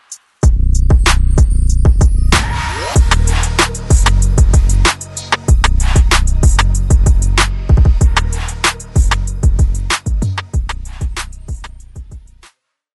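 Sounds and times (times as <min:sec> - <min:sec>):
pop beats: 0:00.0 - 0:12.4.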